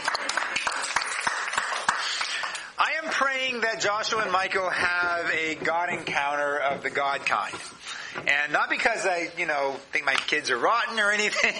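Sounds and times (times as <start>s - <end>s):
audience clapping: 0.0s - 3.3s
speech: 3.1s - 11.5s.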